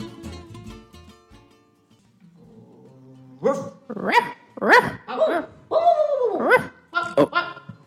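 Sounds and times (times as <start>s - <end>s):
many small dogs barking: 3.4s - 5.5s, 6.4s - 7.7s.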